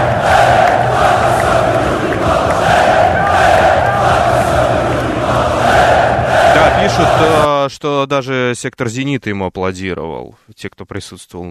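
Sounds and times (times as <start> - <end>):
stadium crowd chanting rhythmic Hey-hey chant: 0.0 - 7.5
speech: 7.8 - 11.5.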